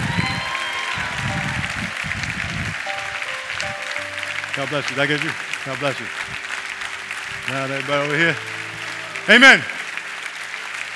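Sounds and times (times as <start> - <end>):
audience applause: 0.0 - 10.9
speech: 4.6 - 6.4, 7.5 - 8.6, 9.3 - 9.8.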